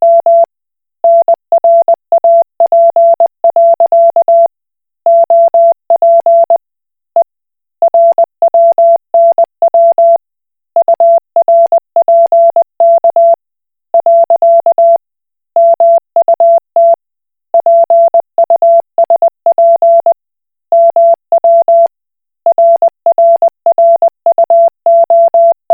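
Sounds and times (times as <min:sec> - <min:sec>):
Koch Morse code beeps: 0:00.0 - 0:04.5, 0:05.1 - 0:06.6, 0:07.9 - 0:10.2, 0:10.8 - 0:13.4, 0:14.0 - 0:15.0, 0:15.6 - 0:17.0, 0:17.6 - 0:20.2, 0:20.8 - 0:21.9, 0:22.5 - 0:25.7.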